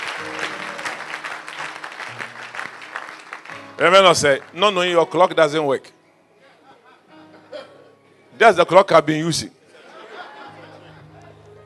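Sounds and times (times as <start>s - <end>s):
audience applauding: 0.0s - 5.0s
speech: 3.8s - 6.0s, 8.4s - 9.6s
laughter: 6.4s - 7.9s, 9.7s - 11.6s.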